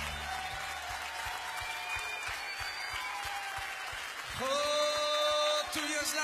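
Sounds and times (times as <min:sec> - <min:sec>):
audience applause: 0:00.0 - 0:06.2.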